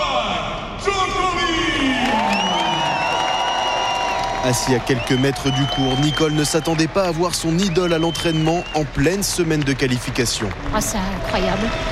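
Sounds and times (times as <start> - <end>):
tennis crowd roaring and cheering: 0.0 - 11.9
speech: 4.4 - 11.9.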